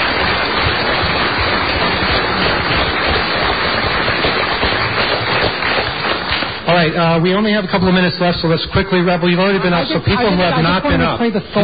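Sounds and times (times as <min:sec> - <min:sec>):
audience applause: 0:00.0 - 0:07.0
speech: 0:06.9 - 0:11.6.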